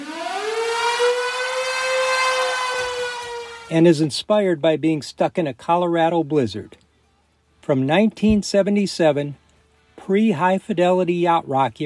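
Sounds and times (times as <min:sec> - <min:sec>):
storm siren wailing at the opening of a live rock performance: 0:00.0 - 0:03.8
speech: 0:03.7 - 0:06.8, 0:07.7 - 0:09.4, 0:10.1 - 0:11.8.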